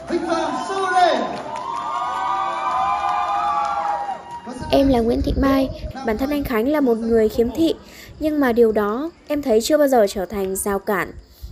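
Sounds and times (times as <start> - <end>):
crowd cheering and shouting to welcome the champion at a celebration: 0.0 - 4.9
speech: 4.7 - 11.2.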